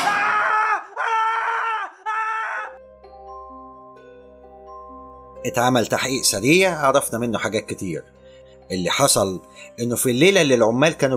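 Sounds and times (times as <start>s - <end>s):
man screaming: 0.0s - 2.8s
speech: 5.4s - 11.1s.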